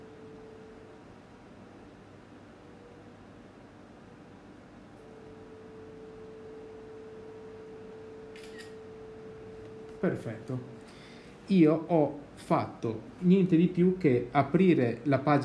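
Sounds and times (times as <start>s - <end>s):
phone scanner app edge-detection tone: 0.0s - 3.4s, 5.0s - 11.9s
sharp high-pitched click: 8.3s - 8.8s
speech: 10.0s - 10.8s, 11.5s - 15.4s.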